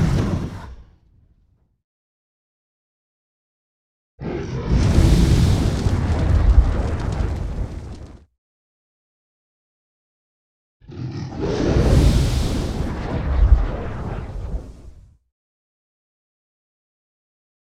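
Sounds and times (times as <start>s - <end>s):
dragon roaring: 0.0s - 0.9s, 4.2s - 5.9s, 10.8s - 12.5s
dragon breathing fire: 0.0s - 1.0s, 4.2s - 8.2s, 10.9s - 15.1s.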